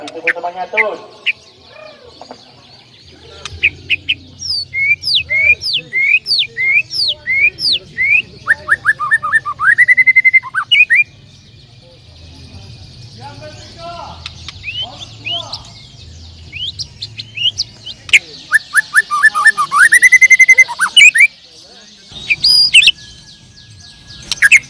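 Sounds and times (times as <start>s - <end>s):
speech: 0.0s - 1.2s
bird whistled song: 3.4s - 11.1s, 14.2s - 21.4s, 22.0s - 24.6s.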